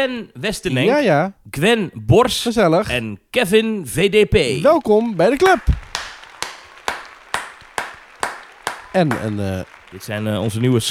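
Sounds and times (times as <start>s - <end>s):
speech: 0.0s - 5.8s, 9.0s - 10.8s
sharp claps greeting newly welcomed supporters: 4.6s - 10.8s.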